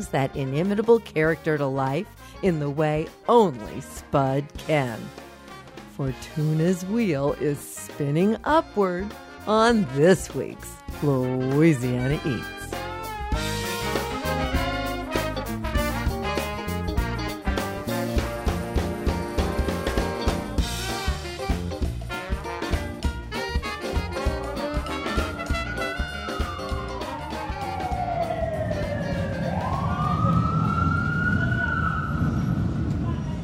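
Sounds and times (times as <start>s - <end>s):
speech: 0.0s - 5.2s, 6.0s - 12.6s
music: 0.0s - 31.0s
siren wailing: 25.7s - 33.0s
busy city street traffic rumble: 27.0s - 33.4s.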